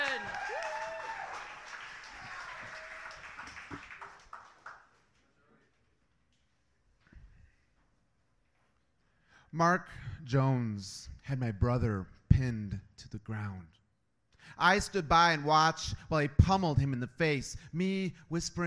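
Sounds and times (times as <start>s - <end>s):
audience applause: 0.0s - 5.1s
speech: 9.5s - 13.8s, 14.5s - 18.6s.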